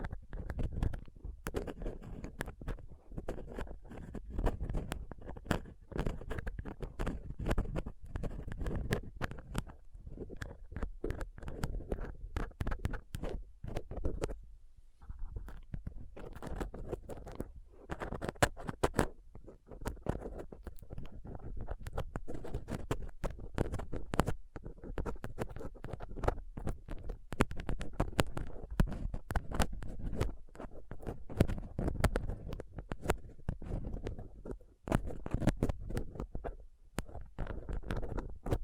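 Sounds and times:
dental tools, tweezers and cotton swab scraping a rough microphone surface: 0:00.0 - 0:38.6.

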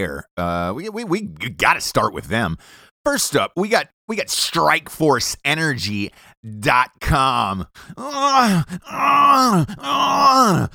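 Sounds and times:
speech: 0:00.0 - 0:10.7
man groaning, presented as being electrocuted in a bathtub: 0:07.9 - 0:10.7.

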